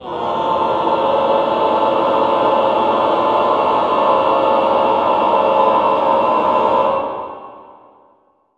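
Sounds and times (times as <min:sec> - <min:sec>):
choir singing cluster chord: 0:00.0 - 0:08.2.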